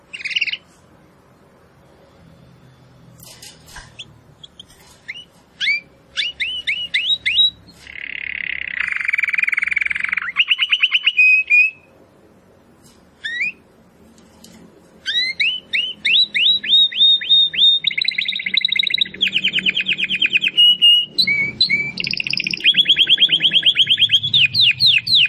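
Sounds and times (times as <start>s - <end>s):
domestic canary singing: 0.0s - 0.7s, 2.3s - 12.0s, 13.2s - 13.7s, 15.0s - 25.2s.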